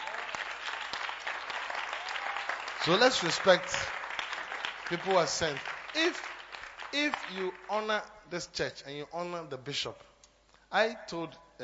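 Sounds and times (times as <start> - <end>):
audience clapping: 0.0 - 8.0
speech: 2.8 - 4.0, 4.9 - 6.3, 6.9 - 10.1, 10.7 - 11.6.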